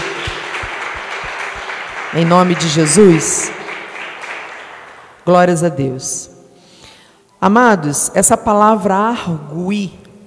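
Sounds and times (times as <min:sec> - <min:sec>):
audience applause: 0:00.0 - 0:05.2
speech: 0:02.1 - 0:03.6, 0:05.3 - 0:06.3, 0:07.4 - 0:10.0.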